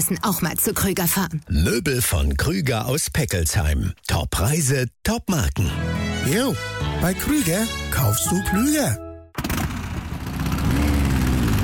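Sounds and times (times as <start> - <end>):
speech: 0.0 - 9.0
vintage motorcycle engine revving at a classic motorcycle exhibition: 9.4 - 11.6.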